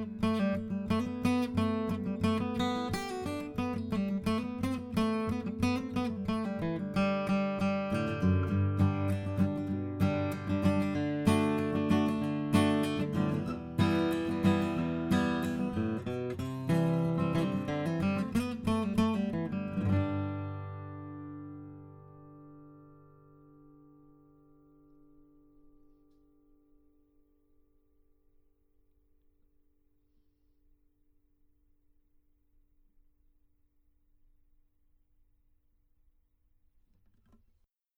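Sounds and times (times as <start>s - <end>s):
acoustic music: 0.0s - 26.6s.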